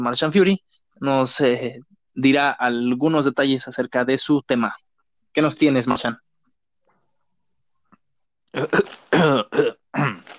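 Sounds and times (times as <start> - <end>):
speech: 0.0 - 6.2, 8.5 - 10.3
man clearing his throat: 8.6 - 10.3.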